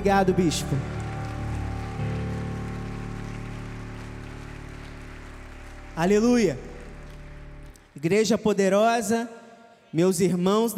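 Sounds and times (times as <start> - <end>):
speech: 0.0 - 1.0, 6.0 - 6.7, 8.0 - 10.7
sustained musical tone: 0.0 - 8.0
large crowd applauding: 0.0 - 8.3.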